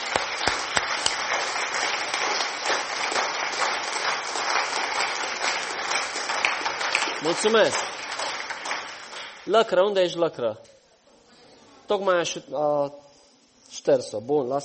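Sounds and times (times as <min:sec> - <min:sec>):
audience applause: 0:00.0 - 0:09.5
speech: 0:07.2 - 0:07.9, 0:09.5 - 0:10.7, 0:11.9 - 0:13.0, 0:13.8 - 0:14.6.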